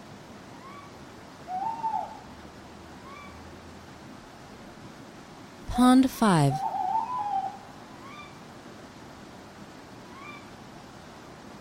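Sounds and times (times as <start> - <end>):
owl hooting in the quiet night: 0.6 - 2.3, 3.0 - 3.4, 6.5 - 8.4, 10.1 - 10.5
speech: 5.8 - 6.7.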